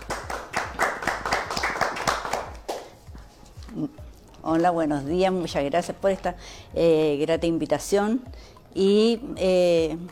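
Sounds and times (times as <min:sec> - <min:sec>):
audience applause: 0:00.0 - 0:02.8
speech: 0:03.8 - 0:10.1.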